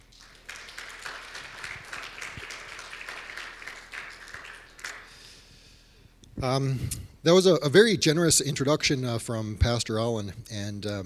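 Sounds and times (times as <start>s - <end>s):
audience applause: 0.0s - 5.3s
speech: 6.4s - 11.0s.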